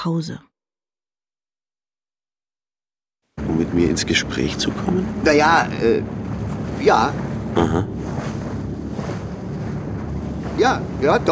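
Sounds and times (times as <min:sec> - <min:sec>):
speech: 0:00.0 - 0:00.5, 0:03.6 - 0:06.2, 0:06.8 - 0:08.2, 0:10.6 - 0:11.2
boat travelling upriver low rumble: 0:03.4 - 0:11.2
buffeting wind noise: 0:03.4 - 0:11.2
water wash: 0:03.4 - 0:11.2.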